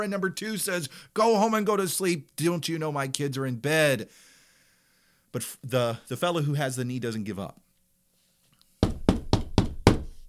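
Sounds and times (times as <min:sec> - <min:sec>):
speech: 0:00.0 - 0:04.3, 0:05.3 - 0:07.6
heavy knocking on a door: 0:08.8 - 0:10.2.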